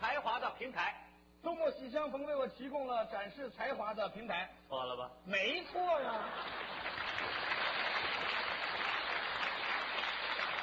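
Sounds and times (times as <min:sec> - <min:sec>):
speech: 0:00.6 - 0:07.4
clapping: 0:06.4 - 0:10.6.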